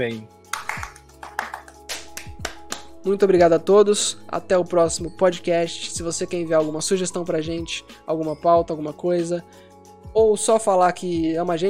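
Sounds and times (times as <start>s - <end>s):
speech: 0.0s - 0.4s, 3.0s - 11.6s
hand clapping: 0.5s - 3.0s.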